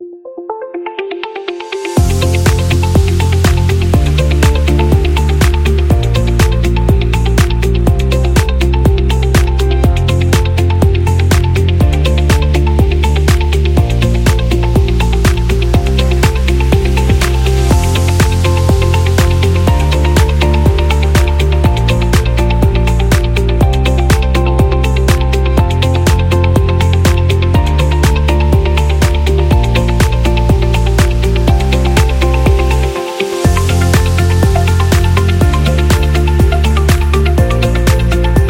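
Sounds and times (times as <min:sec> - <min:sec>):
corporate event music: 0:00.0 - 0:38.4.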